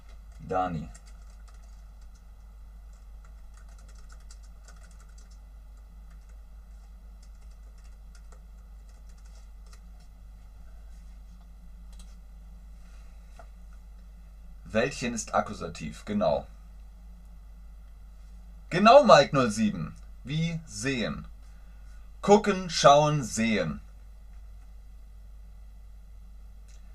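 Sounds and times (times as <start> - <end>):
typing an answer on a computer keyboard: 0.0 - 2.2, 2.9 - 5.4, 6.1 - 6.4, 7.2 - 9.8
low hum: 0.0 - 26.9
speech: 0.5 - 1.0, 14.8 - 16.6, 18.8 - 21.3, 22.2 - 23.8.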